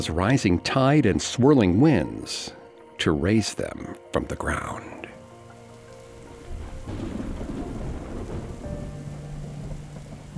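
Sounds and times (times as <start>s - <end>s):
speech: 0.0s - 5.0s
rain pounding against a tin roof in a thunderstorm: 5.4s - 10.3s
hail against a tin roof: 6.0s - 10.3s.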